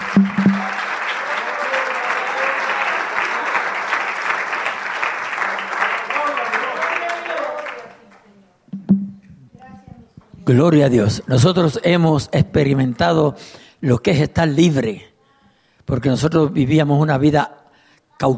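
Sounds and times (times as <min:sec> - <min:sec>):
crowd applauding: 0:00.0 - 0:08.2
speech: 0:10.5 - 0:15.1, 0:15.9 - 0:17.6.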